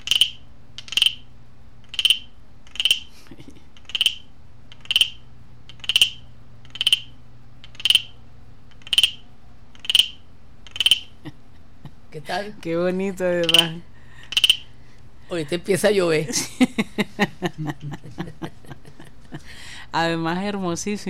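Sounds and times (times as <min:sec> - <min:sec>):
frog-like call made by a crafted instrument: 0:00.0 - 0:01.3, 0:01.9 - 0:03.1, 0:03.8 - 0:09.2, 0:09.8 - 0:11.2, 0:13.4 - 0:14.7
low constant hum: 0:00.0 - 0:21.0
laughter: 0:03.2 - 0:03.6, 0:15.3 - 0:19.8
speech: 0:12.3 - 0:13.9, 0:15.3 - 0:18.2, 0:20.0 - 0:21.0.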